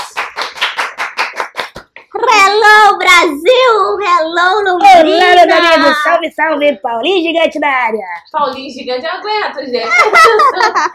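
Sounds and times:
audience clapping: 0:00.0 - 0:02.1
speech: 0:02.5 - 0:10.9
laughter: 0:09.8 - 0:10.9.

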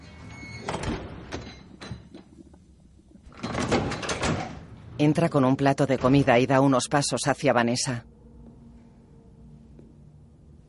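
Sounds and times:
door closing: 0:00.0 - 0:02.4, 0:03.3 - 0:05.0
speech: 0:05.0 - 0:08.1.

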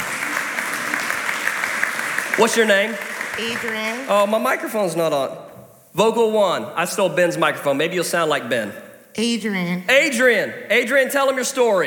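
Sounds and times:
audience applause: 0:00.0 - 0:04.8
speech: 0:02.4 - 0:11.8.

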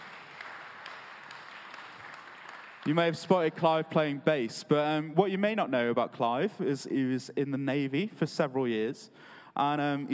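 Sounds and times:
people clapping: 0:00.0 - 0:03.8
speech: 0:02.9 - 0:10.1.

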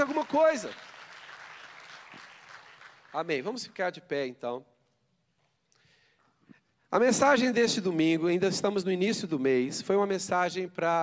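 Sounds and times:
speech: 0:00.0 - 0:00.9, 0:03.1 - 0:04.7, 0:06.9 - 0:11.0
audience applause: 0:00.0 - 0:03.3.

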